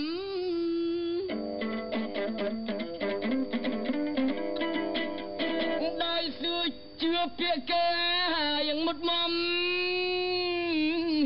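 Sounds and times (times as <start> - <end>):
man singing on shortwave radio: 0.0 - 1.3, 5.8 - 11.2
plucked chapei dong veng heard on shortwave radio in Siem Reap, Cambodia: 1.0 - 6.4.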